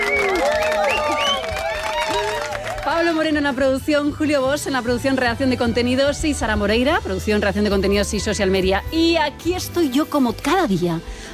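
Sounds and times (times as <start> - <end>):
whooping voices: 0.0 - 3.2
audience clapping: 0.0 - 3.4
speech: 3.1 - 11.3.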